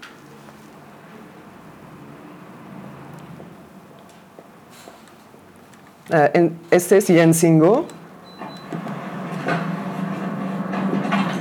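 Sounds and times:
speech: 6.1 - 8.0
door opening and closing: 7.9 - 11.4.

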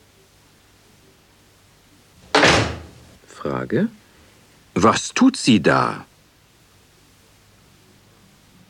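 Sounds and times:
door shut with a thud: 2.2 - 3.2
speech: 3.4 - 4.0, 4.8 - 6.1.

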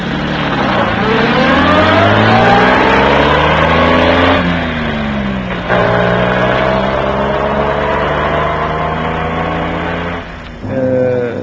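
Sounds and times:
car engine running and revving: 0.0 - 11.4.

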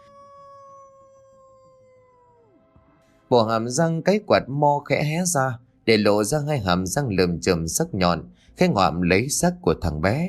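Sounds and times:
lead dog howling mournfully: 0.0 - 2.9
speech: 3.3 - 10.2.

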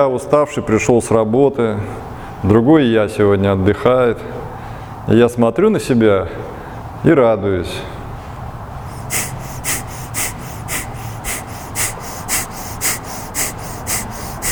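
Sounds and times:
speech: 0.0 - 4.4, 5.0 - 8.0
rapid rhythmic breathing during a kriya yoga warm-up: 8.7 - 14.5.

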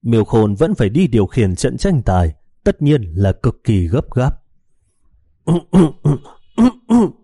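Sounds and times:
speech: 0.0 - 4.4, 5.5 - 7.2
harsh throaty coughing with throat clearing: 5.5 - 7.2.

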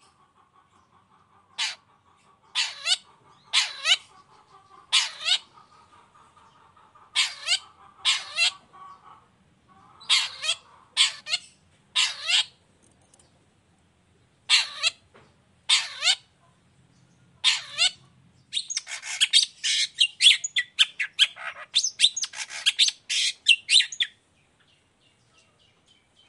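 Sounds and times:
Long-tailed shrike harsh scratchy calls: 1.5 - 5.6, 7.2 - 8.6, 10.0 - 12.6, 14.5 - 15.0, 15.7 - 16.3, 17.4 - 18.0, 18.6 - 24.2.

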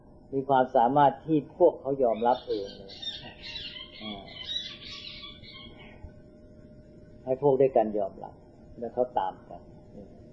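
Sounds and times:
speech: 0.3 - 4.4, 7.2 - 10.2
doves squabbling with high chirping calls: 1.9 - 6.2.

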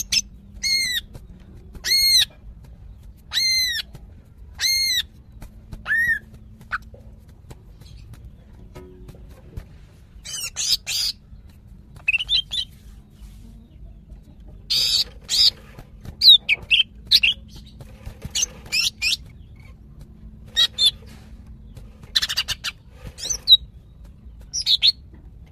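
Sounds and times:
female greater green leafbird calling: 0.0 - 1.2, 1.8 - 6.9, 10.2 - 11.4, 14.7 - 19.8, 20.5 - 25.0.

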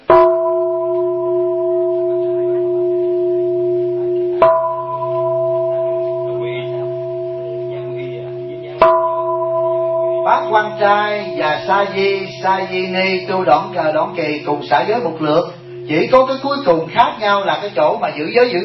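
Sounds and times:
bell struck: 0.0 - 18.6
speech: 10.5 - 18.6.

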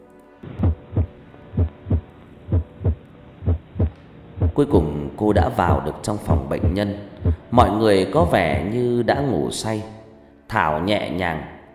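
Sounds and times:
heartbeat sound effect: 0.5 - 4.6, 5.6 - 5.9, 6.6 - 7.4
speech: 4.6 - 11.5.

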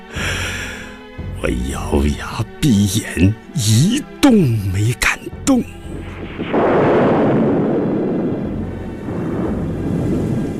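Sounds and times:
speech: 1.4 - 5.8
loud crash of thunder with deep sustained rumble: 6.0 - 10.5
rain: 6.2 - 10.5.

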